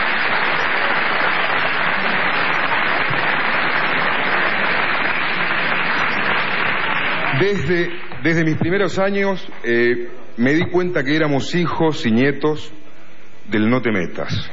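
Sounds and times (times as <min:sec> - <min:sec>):
audience applause: 0:00.0 - 0:08.4
speech: 0:07.4 - 0:12.8, 0:13.5 - 0:14.5.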